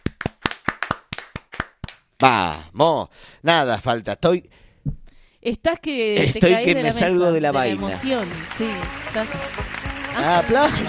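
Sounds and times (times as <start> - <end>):
hand clapping at a community radio gathering in a social and cultural center: 0.0 - 2.1, 7.6 - 10.8
speech: 2.2 - 9.6, 10.2 - 10.8.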